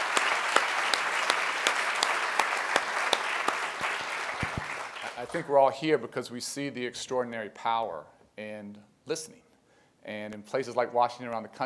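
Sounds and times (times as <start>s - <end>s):
audience applause: 0.0s - 5.4s
speech: 5.2s - 9.4s, 10.0s - 11.6s.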